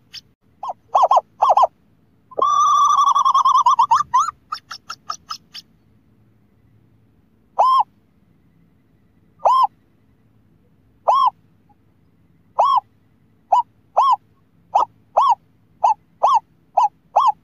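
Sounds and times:
scops owl hooting: 0.0 - 5.7, 7.5 - 8.0, 9.3 - 9.8, 11.0 - 11.8, 12.4 - 17.4.

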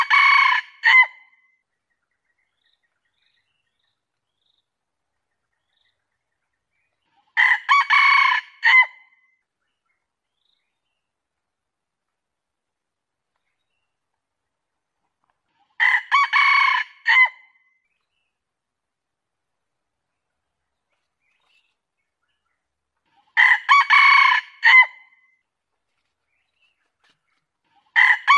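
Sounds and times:
junglefowl crowing: 0.0 - 1.2, 7.4 - 9.0, 15.8 - 17.4, 23.4 - 25.0, 28.0 - 28.3.

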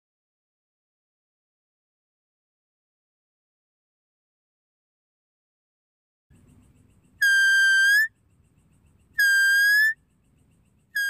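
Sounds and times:
deer whistled calls: 7.2 - 8.1, 9.2 - 10.0.

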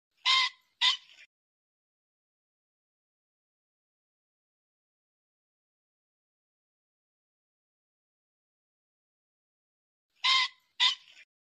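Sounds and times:
pheasant squawking: 0.2 - 1.3, 10.2 - 11.2.

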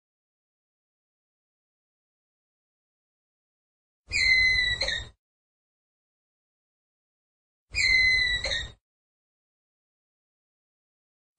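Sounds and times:
ground squirrel whistled call: 4.1 - 5.2, 7.7 - 8.8.

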